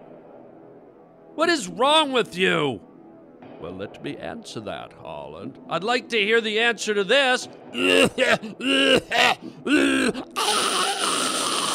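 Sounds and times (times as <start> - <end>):
speech: 1.4 - 2.9, 3.6 - 10.6
raspy hacking cough: 7.8 - 10.5
groaning throat noises: 7.8 - 11.7.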